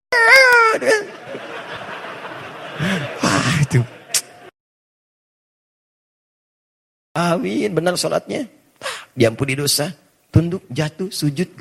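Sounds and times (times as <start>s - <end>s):
baby shouting at the back during prayers: 0.1s - 1.1s
laughter: 0.7s - 4.5s
speech: 0.8s - 1.6s, 3.7s - 4.0s, 7.2s - 8.6s, 9.2s - 11.5s.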